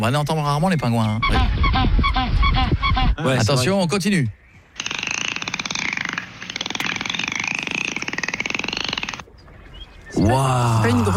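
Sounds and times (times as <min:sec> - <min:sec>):
speech: 0:00.0 - 0:04.4, 0:10.2 - 0:11.1
dolphin clicks: 0:04.8 - 0:09.3.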